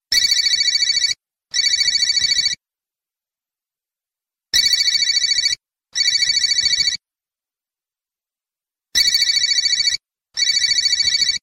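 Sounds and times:
phone ringtone: 0.2 - 2.6, 4.6 - 7.0, 9.0 - 11.4.

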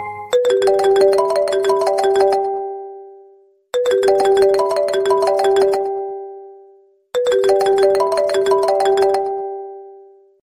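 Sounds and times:
Apple phone ring: 0.3 - 2.6, 3.7 - 6.1, 7.2 - 9.7.

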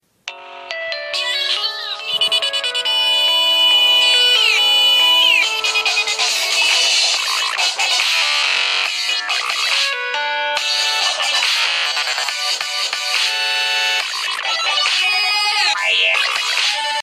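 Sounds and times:
Nokia Lumia ringtone: 0.3 - 17.0.

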